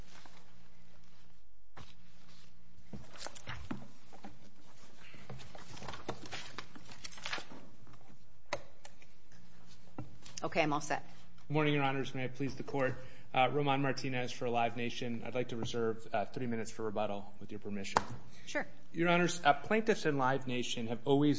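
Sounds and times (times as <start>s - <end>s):
papers rustling: 0.0s - 8.2s
speech: 10.5s - 21.3s.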